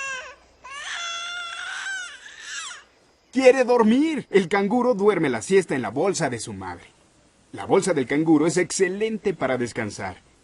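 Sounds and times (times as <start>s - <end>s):
infant crying: 0.0s - 2.9s
speech: 3.4s - 10.3s.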